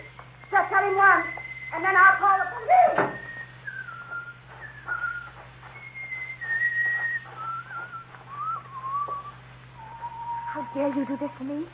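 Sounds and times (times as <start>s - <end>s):
man whistling: 0.4s - 11.3s
speech: 10.8s - 11.7s.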